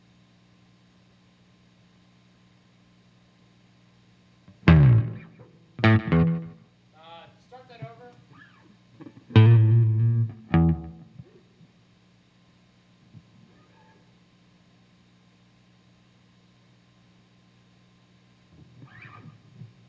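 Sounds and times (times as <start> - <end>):
bass slide: 4.7 - 6.6, 9.4 - 11.0.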